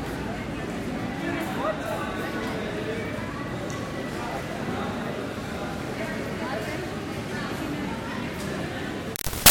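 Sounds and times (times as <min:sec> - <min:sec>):
crowd at a market in Costa Rica: 0:00.0 - 0:09.4.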